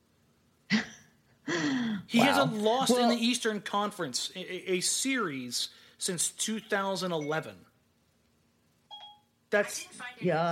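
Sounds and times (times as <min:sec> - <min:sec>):
smartphone voice assistant synthetic voice speaking: 0:02.1 - 0:03.3
speech: 0:02.1 - 0:07.7, 0:09.5 - 0:10.5
two-tone electronic chime of smartphone voice assistant: 0:08.9 - 0:09.3.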